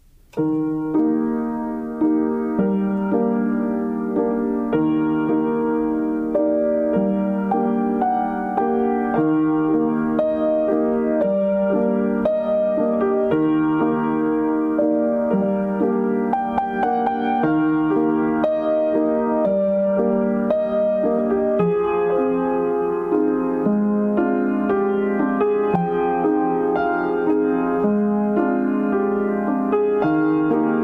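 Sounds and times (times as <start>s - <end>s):
piano inserts: 0.0s - 30.8s.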